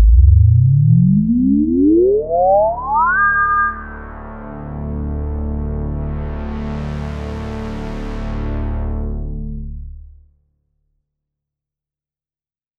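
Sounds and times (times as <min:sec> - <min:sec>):
Moog synth through low-pass filter: 0:00.0 - 0:10.1.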